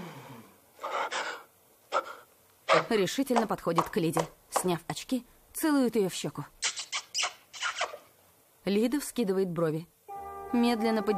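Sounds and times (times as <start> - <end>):
man drawing a deep sharp breath as he straightens up: 0.0 - 2.2
speech: 2.8 - 6.6, 8.6 - 11.1.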